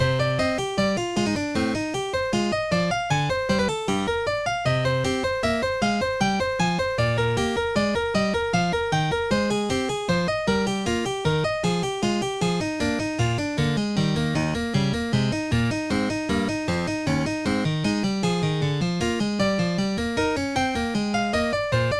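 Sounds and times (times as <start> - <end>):
prelude: 0.0 - 21.9.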